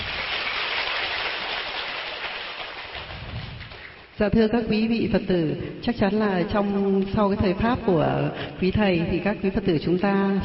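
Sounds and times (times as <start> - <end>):
applause: 0.0 - 4.1
speech: 4.2 - 10.4.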